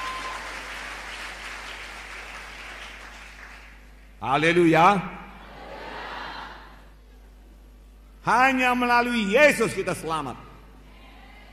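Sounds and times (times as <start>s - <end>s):
audience applauding: 0.0s - 3.9s
speech: 4.2s - 5.2s, 8.2s - 10.4s.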